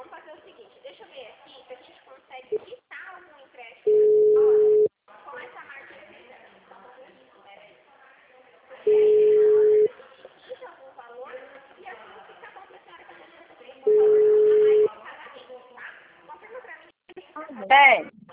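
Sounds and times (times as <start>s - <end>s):
telephone tone beeps after a dropped call: 3.9s - 4.9s, 8.9s - 9.9s, 13.9s - 14.9s.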